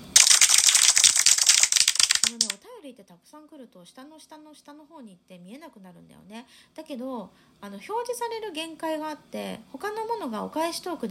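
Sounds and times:
applause: 0:00.0 - 0:02.6
speech: 0:03.0 - 0:11.0.

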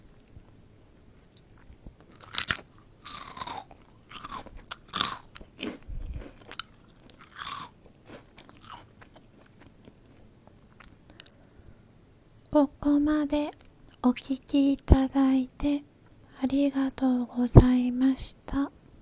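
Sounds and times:
crunchy chewing of Calbee Saya-endo fried pea snacks: 0:01.2 - 0:11.5
speech: 0:12.6 - 0:18.8.

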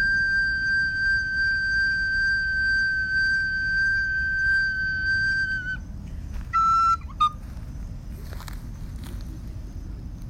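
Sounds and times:
recorder playing in a park: 0:00.0 - 0:05.8, 0:06.5 - 0:07.4
wind rumbling in a park: 0:00.0 - 0:10.2.

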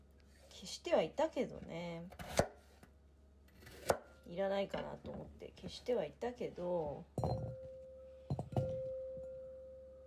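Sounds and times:
low hum: 0:00.0 - 0:10.0
speech: 0:00.6 - 0:02.5, 0:04.3 - 0:07.5
knife chopping on a cutting board while making potato salad: 0:03.6 - 0:04.1.

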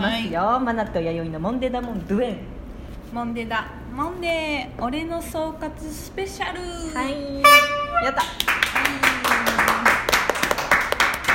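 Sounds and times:
speech: 0:00.2 - 0:09.1
scattered hand claps from a few people in a radio studio: 0:08.2 - 0:11.3.

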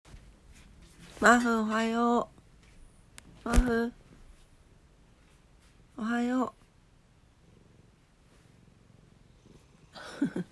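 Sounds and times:
speech: 0:01.2 - 0:02.4, 0:03.4 - 0:04.0, 0:06.0 - 0:06.6, 0:10.0 - 0:10.5
cat purring: 0:06.5 - 0:10.5.

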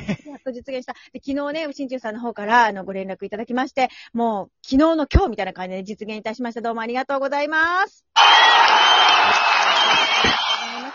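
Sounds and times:
speech: 0:00.1 - 0:10.6
crowd clapping and cheering: 0:08.2 - 0:10.9
whoops: 0:08.2 - 0:10.9.

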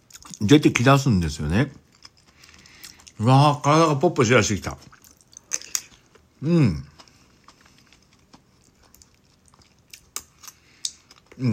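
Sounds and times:
speech: 0:00.4 - 0:01.8, 0:03.2 - 0:05.0, 0:06.4 - 0:06.9, 0:11.4 - 0:11.5
person chewing fukujinzuke pickles: 0:01.5 - 0:03.3, 0:04.6 - 0:11.5.

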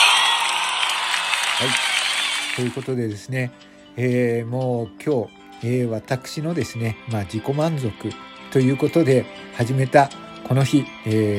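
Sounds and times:
crowd applauding: 0:00.0 - 0:03.0
speech: 0:01.6 - 0:01.9, 0:02.6 - 0:11.3.

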